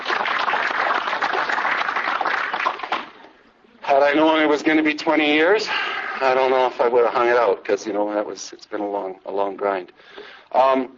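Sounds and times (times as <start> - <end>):
audience applause: 0.0 - 3.2
speech: 3.9 - 10.9.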